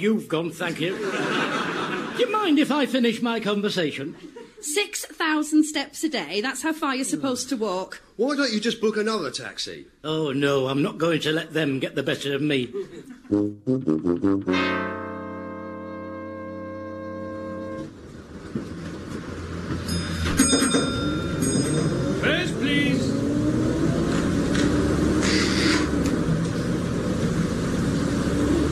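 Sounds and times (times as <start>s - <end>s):
speech: 0.0s - 15.0s
laughter: 0.7s - 2.7s, 4.0s - 4.7s, 12.5s - 13.3s
bus engine rumble driving straight past: 17.6s - 28.7s.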